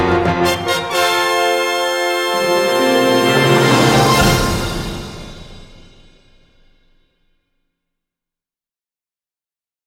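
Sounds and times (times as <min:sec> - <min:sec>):
orchestral music: 0:00.0 - 0:06.8.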